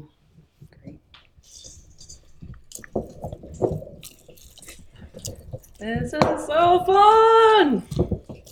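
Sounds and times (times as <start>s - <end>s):
berries squeezed and mashed by hand: 1.4s - 8.5s
speech: 5.8s - 8.0s.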